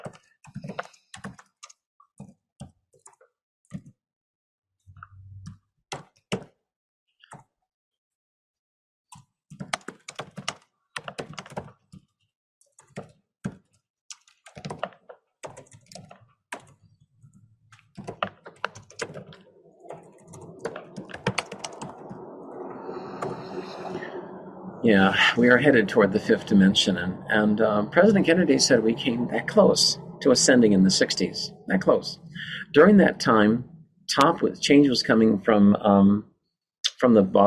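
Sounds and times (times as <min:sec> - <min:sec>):
typing a note on computer keyboard: 0:00.0 - 0:03.2, 0:09.5 - 0:12.1, 0:12.7 - 0:16.8, 0:17.7 - 0:22.2
speech: 0:24.9 - 0:36.3, 0:37.0 - 0:37.4.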